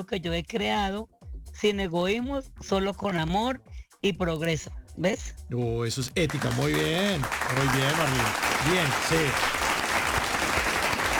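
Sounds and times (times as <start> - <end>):
speech: 0.0 - 9.6
audience applause: 6.3 - 11.1.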